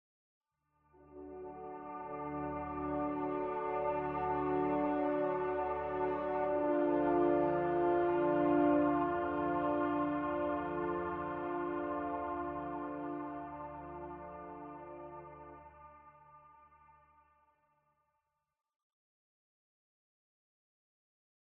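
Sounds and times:
ambient music: 0:00.9 - 0:17.4.

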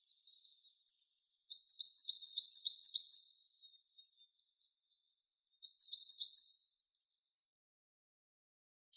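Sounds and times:
coal tit Periparus ater calling: 0:01.4 - 0:03.2, 0:05.6 - 0:06.4.

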